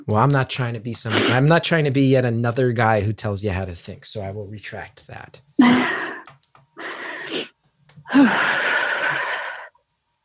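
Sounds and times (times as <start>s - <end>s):
speech: 0.0s - 5.9s, 8.1s - 8.5s
heavy labored breathing: 5.6s - 9.7s.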